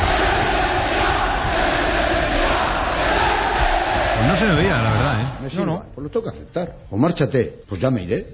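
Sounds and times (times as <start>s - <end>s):
football crowd roaring at El Molinón stadium: 0.0s - 5.6s
speech: 5.5s - 8.3s.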